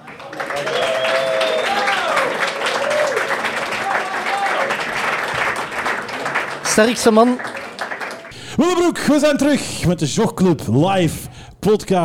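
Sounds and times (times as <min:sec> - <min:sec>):
whooping and cheering voices: 0:00.0 - 0:06.2
loud applause from live audience: 0:00.0 - 0:09.8
speech: 0:06.8 - 0:07.6, 0:08.6 - 0:12.0.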